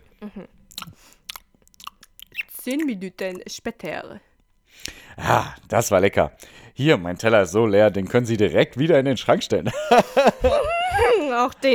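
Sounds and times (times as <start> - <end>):
speech: 0.2 - 1.2, 2.6 - 11.7
chewing a Bounty chocolate bar served as dessert: 0.5 - 3.5
laughter: 9.6 - 11.7.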